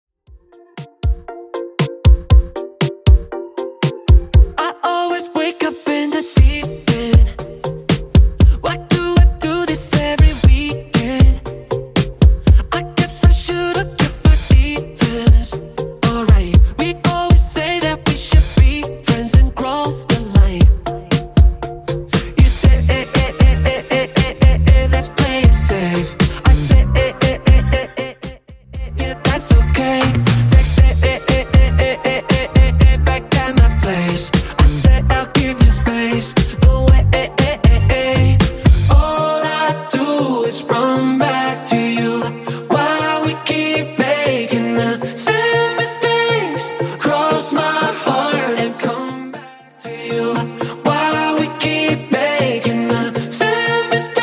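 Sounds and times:
Top40 DJ-friendly remix at 118 bpm: 0.5 - 54.2.

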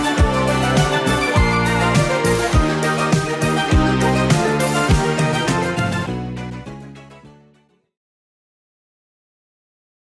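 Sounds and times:
80s drum beat: 0.0 - 6.0.

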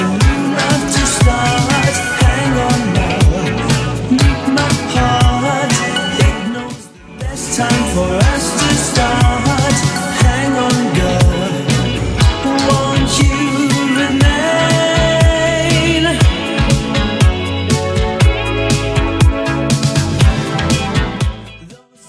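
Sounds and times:
80s drum beat at 120 bpm: 0.0 - 21.6.

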